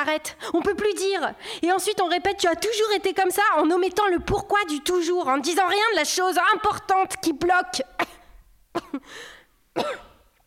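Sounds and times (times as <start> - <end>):
speech: 0.0 - 8.0, 8.8 - 10.1
person coughing with something caught in the throat: 8.0 - 9.2, 9.8 - 10.4.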